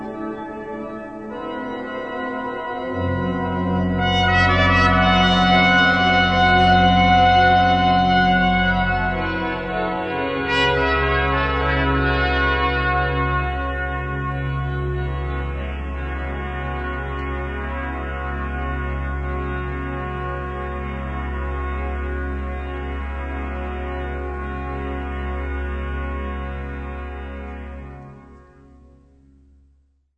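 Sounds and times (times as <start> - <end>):
organ improvisation in Valladolid: 0.0 - 28.5
trumpet improvisation in Valladolid: 1.3 - 21.4.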